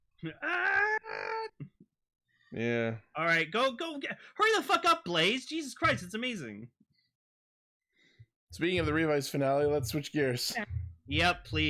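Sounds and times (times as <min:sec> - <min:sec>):
speech: 0:00.2 - 0:00.8, 0:02.5 - 0:06.8, 0:08.5 - 0:11.6
character screaming in agony: 0:00.2 - 0:01.6.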